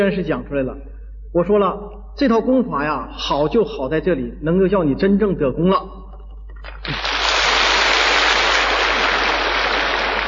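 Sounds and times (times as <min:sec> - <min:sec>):
speech: 0:00.0 - 0:06.0
crowd applause: 0:06.7 - 0:10.2.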